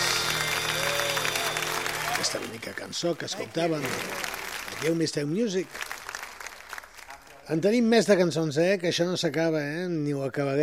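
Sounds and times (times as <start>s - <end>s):
applause: 0.0s - 7.9s
speech: 2.2s - 5.9s, 7.5s - 10.6s.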